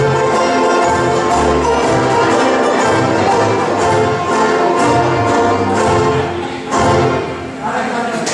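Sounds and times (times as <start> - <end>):
banjo band playing: 0.0 - 8.2.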